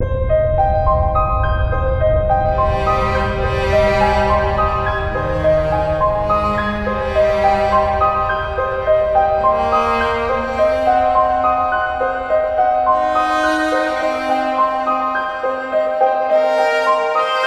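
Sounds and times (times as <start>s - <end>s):
plane taking off: 0.0s - 17.3s.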